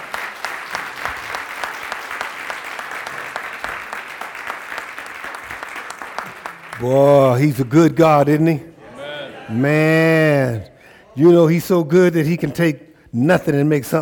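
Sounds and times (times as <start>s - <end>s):
audience applause: 0.0s - 7.6s
speech: 6.8s - 8.7s, 9.5s - 14.0s.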